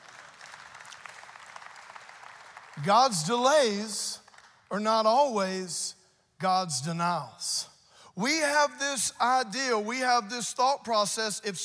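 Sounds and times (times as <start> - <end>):
audience applause: 0.0 - 3.3
speech: 2.8 - 11.6.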